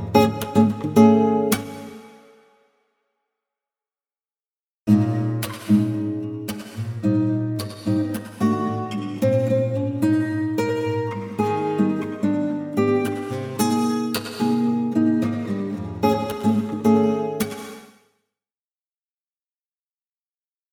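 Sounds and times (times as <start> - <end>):
acoustic guitar with wet effects variations: 0.0 - 2.6, 4.9 - 18.0.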